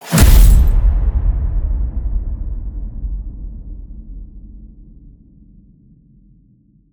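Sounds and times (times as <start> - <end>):
cinematic metal crash hit: 0.0 - 1.4.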